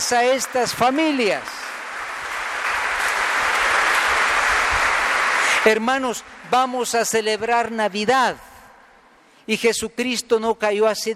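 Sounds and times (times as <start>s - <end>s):
audience applause: 0.0s - 6.1s
speech: 0.1s - 1.8s, 5.6s - 8.5s, 9.5s - 11.1s.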